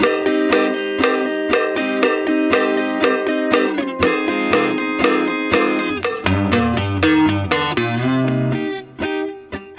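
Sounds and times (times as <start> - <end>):
isolated rhythm guitar: 0.0 - 9.7.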